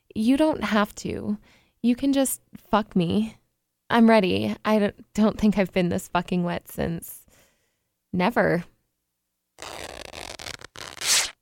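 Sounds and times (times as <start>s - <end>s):
speech: 0.2s - 7.2s, 8.1s - 8.7s
fabric tearing as panties are ripped off: 9.6s - 11.3s.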